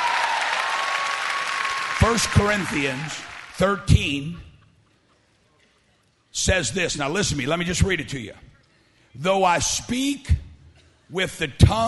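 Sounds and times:
audience clapping hands: 0.0s - 3.9s
speech: 2.0s - 4.5s, 6.4s - 8.5s, 9.2s - 10.4s, 11.1s - 11.8s.

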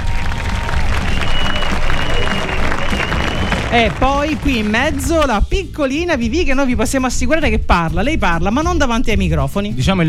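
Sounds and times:
applause: 0.0s - 5.3s
speech: 3.7s - 10.0s.

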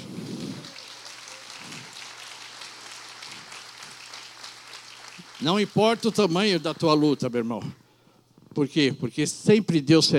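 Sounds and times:
audience applause: 0.0s - 7.0s
speech: 5.4s - 7.8s, 8.6s - 10.1s.

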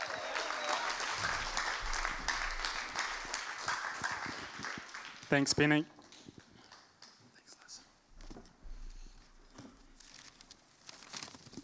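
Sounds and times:
church congregation applauding to welcome a speaker: 0.0s - 7.4s
speech: 5.3s - 6.0s.

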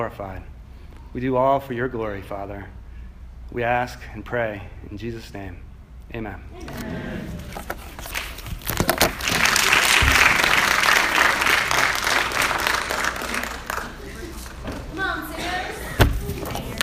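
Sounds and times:
speech: 0.0s - 0.5s, 1.2s - 2.8s, 3.5s - 7.9s
audience applause: 7.4s - 15.9s.

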